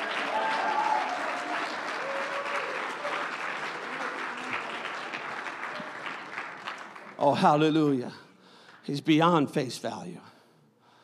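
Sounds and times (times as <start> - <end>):
audience shouting: 0.0 - 4.6
audience clapping: 0.0 - 8.0
speech: 7.2 - 8.2, 8.8 - 10.3.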